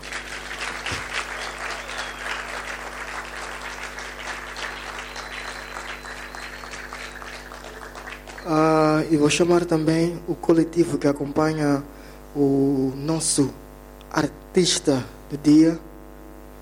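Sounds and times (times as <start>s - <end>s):
audience applause: 0.0s - 8.8s
speech: 8.4s - 13.6s, 14.2s - 15.9s.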